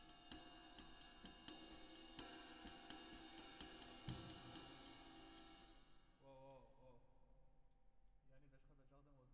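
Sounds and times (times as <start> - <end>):
drums with reverb: 0.0 - 6.3.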